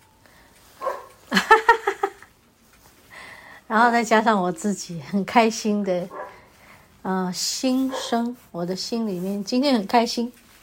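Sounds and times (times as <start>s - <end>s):
dog barking downstairs: 0.8s - 1.2s, 6.1s - 6.4s, 7.8s - 8.3s
speech: 3.7s - 6.2s, 7.0s - 10.4s.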